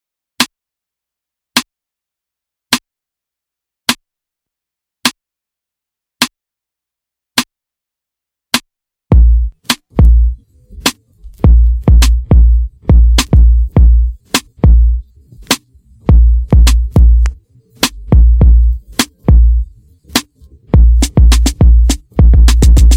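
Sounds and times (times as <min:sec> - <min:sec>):
instrumental music: 0:09.1 - 0:22.9.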